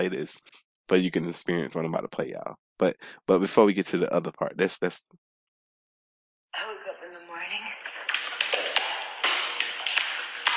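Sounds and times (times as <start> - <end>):
speech: 0.0 - 5.2, 6.5 - 7.0
sharp crisp hand claps: 7.8 - 10.5.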